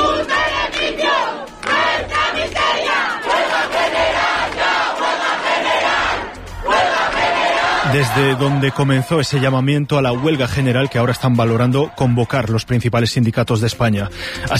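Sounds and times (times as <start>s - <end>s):
protest crowd shouting outside parliament: 0.0s - 11.1s
speech: 7.9s - 14.5s.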